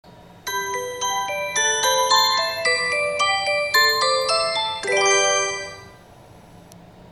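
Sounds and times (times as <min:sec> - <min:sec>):
chime: 0:00.5 - 0:06.0.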